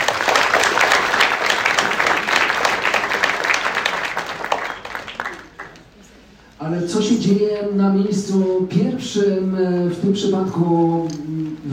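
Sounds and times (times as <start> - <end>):
audience applause: 0.0 - 6.1
speech: 7.2 - 11.3.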